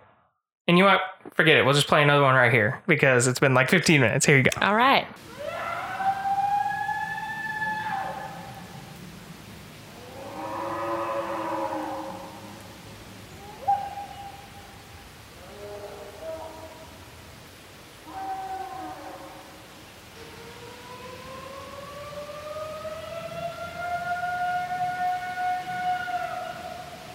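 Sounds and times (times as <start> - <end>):
speech: 0.7 - 5.4
recorded howl from a trail camera: 5.3 - 8.9, 10.0 - 12.7, 13.4 - 14.6, 15.4 - 17.0, 18.0 - 19.6, 20.2 - 27.1.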